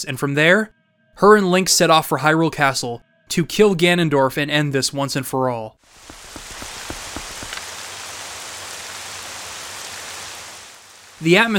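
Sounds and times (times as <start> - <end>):
speech: 0.0 - 6.1, 11.2 - 11.5
pouring rain in a courtyard: 5.8 - 11.5.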